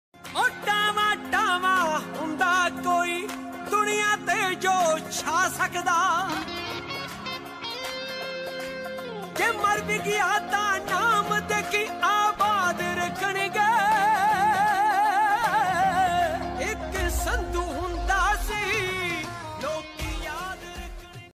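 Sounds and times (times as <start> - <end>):
Punjabi DJ music ringtone: 0.2 - 21.3.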